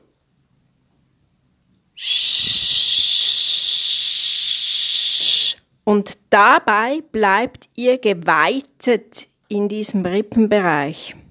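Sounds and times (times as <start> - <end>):
exhaling with a hissing sch: 2.0 - 5.6
speech: 5.9 - 11.2.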